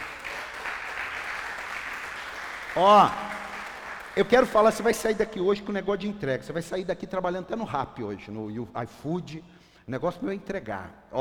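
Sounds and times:
crowd clapping: 0.0s - 5.1s
speech: 2.8s - 3.2s, 4.2s - 11.2s.

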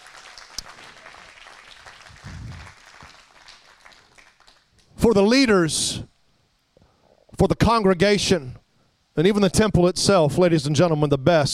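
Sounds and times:
audience clapping: 0.0s - 4.9s
low murmur: 2.0s - 2.8s
speech: 5.0s - 6.1s, 7.4s - 8.6s, 9.2s - 11.5s.

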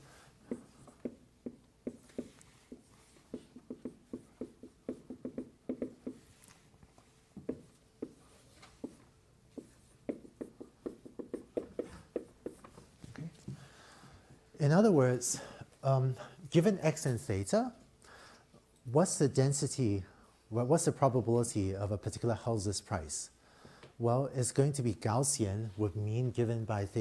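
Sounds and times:
marker or chalk writing on a lecture board: 0.5s - 12.8s
speech: 14.6s - 17.8s, 18.9s - 23.4s, 24.0s - 27.0s.

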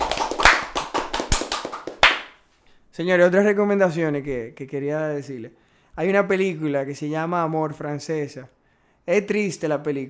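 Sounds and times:
audience applause: 0.0s - 2.3s
speech: 3.0s - 10.0s.

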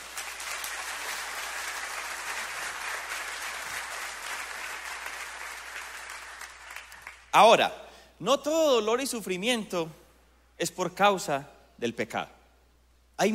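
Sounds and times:
audience applause: 0.0s - 7.3s
speech: 7.4s - 10.0s, 10.6s - 12.4s, 13.2s - 13.3s.

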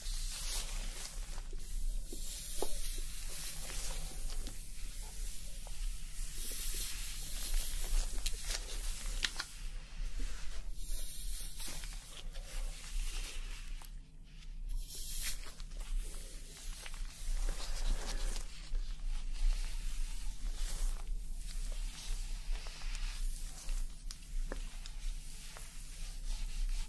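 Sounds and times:
foamy scalp massage and hair wash sounds: 0.0s - 26.8s.

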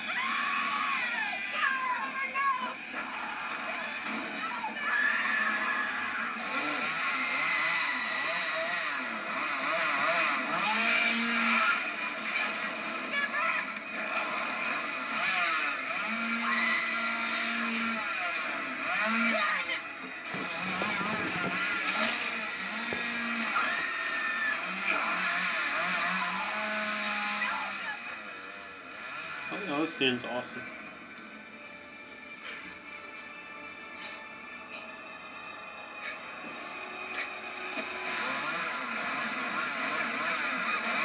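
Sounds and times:
chainsaw running: 0.0s - 31.0s, 37.0s - 41.0s
speech: 30.0s - 30.8s.

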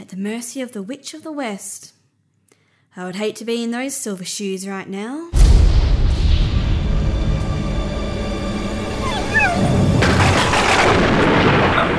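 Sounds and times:
speech: 0.1s - 2.0s, 2.9s - 6.0s
thunder from a lightning storm: 5.4s - 11.9s
high whimpering yelps: 9.0s - 10.2s.

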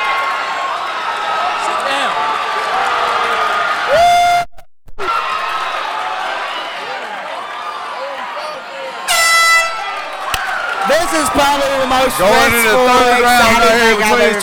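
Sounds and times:
crowd noise and chatter: 0.0s - 14.4s
fight round buzzer blaring: 9.1s - 10.1s
speech: 11.1s - 14.4s.

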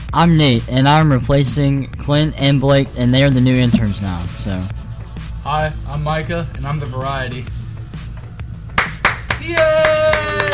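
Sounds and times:
speech: 0.1s - 4.8s, 5.5s - 7.6s, 9.4s - 10.5s
applause sound effect from a button: 8.8s - 10.5s.

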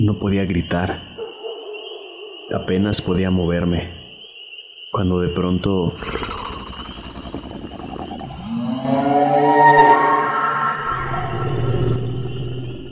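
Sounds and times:
speech: 0.1s - 1.1s, 2.5s - 4.0s, 4.9s - 6.5s
creature roar rising into shrill screech: 6.0s - 12.2s.

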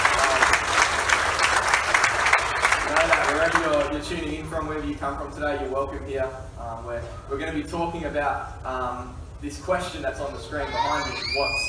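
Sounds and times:
audience applause: 0.0s - 4.0s
speech: 3.9s - 11.6s.

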